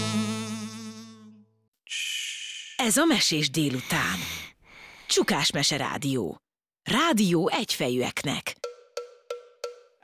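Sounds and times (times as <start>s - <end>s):
housefly buzzing: 0.2s - 1.3s
speech: 2.8s - 4.3s, 5.1s - 8.6s.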